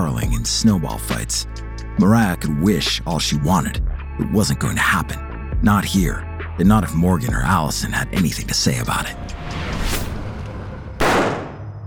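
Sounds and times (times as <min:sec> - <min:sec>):
speech: 0:00.0 - 0:10.0
gunshot: 0:11.0 - 0:11.8.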